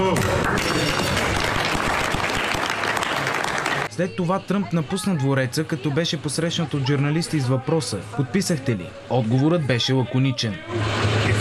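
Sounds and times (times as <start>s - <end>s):
applause: 0.0s - 3.9s
speech: 4.0s - 11.1s.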